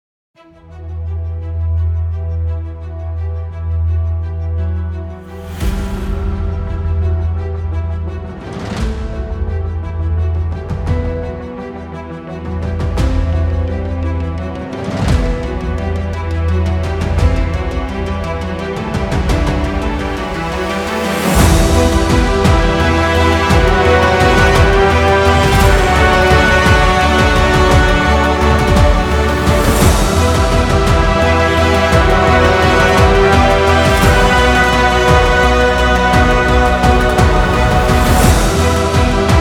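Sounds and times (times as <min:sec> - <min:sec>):
epic trailer music: 0:00.4 - 0:39.3.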